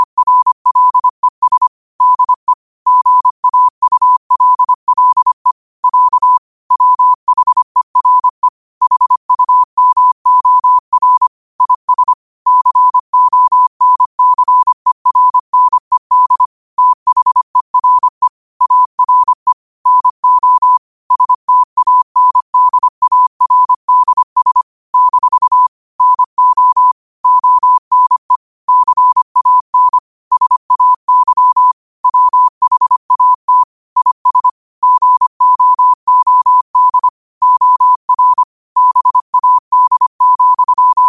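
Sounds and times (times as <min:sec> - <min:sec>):
morse code beeps at slow speed: 0:00.0 - 0:41.0.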